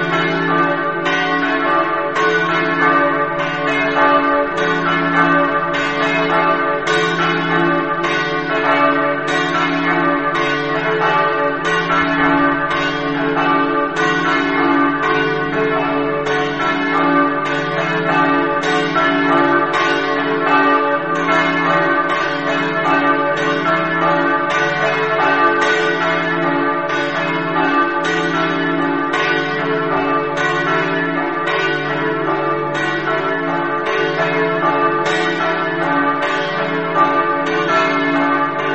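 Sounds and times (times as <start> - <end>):
bells ringing in Sacile: 0.0 - 38.7.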